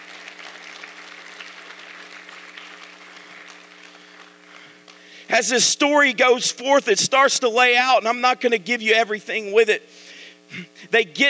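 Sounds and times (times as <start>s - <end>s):
audience hand clapping: 0.0s - 5.0s
speech: 5.4s - 11.2s.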